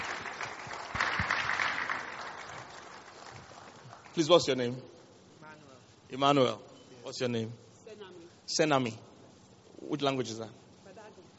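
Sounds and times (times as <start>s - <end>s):
audience clapping: 0.0s - 4.6s
speech: 4.2s - 4.9s, 6.1s - 7.6s, 8.5s - 9.1s, 9.8s - 10.6s.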